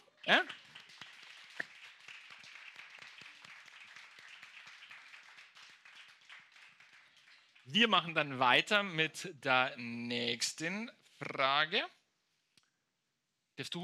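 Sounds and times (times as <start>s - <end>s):
speech: 0.2s - 0.6s, 7.7s - 12.0s, 13.6s - 13.8s
audience applause: 0.3s - 8.1s.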